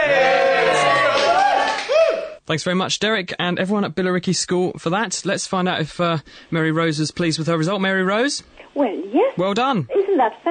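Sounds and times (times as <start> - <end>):
schoolchildren cheering: 0.0 - 2.4
speech: 2.5 - 10.4.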